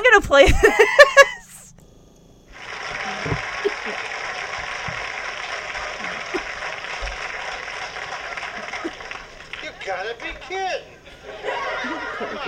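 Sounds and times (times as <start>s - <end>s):
speech: 0.2s - 1.2s
laughter: 0.4s - 1.4s, 2.6s - 12.4s
applause: 2.5s - 10.8s.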